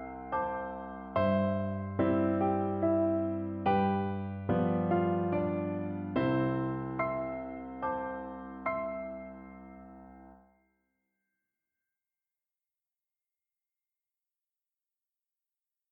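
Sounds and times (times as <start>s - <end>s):
piano: 0.0s - 10.8s.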